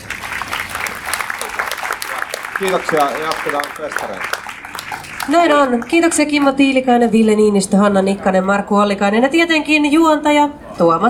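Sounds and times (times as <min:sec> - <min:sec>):
audience applause: 0:00.0 - 0:06.6
speech: 0:02.6 - 0:04.4, 0:05.0 - 0:11.0.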